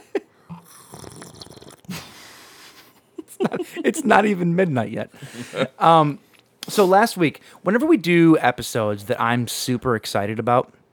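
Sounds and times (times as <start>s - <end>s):
person slurping a drink: 0.5s - 2.0s
laughter: 2.8s - 4.2s, 5.2s - 6.0s
speech: 3.8s - 10.8s.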